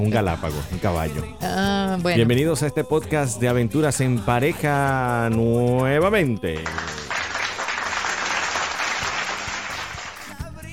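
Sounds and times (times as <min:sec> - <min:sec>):
speech: 0:00.0 - 0:07.0
faint distant applause sound effect: 0:06.6 - 0:10.4.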